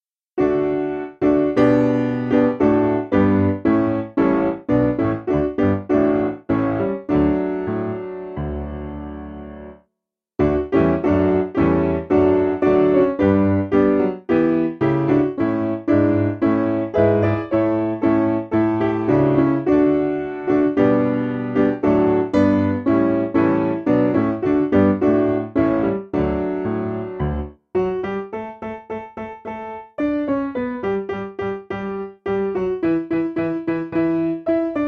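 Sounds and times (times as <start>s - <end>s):
piano: 0.4s - 34.8s.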